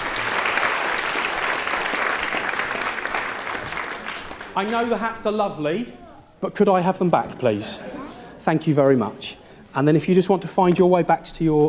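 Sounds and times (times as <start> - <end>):
audience applause: 0.0 - 5.0
speech: 4.6 - 11.6.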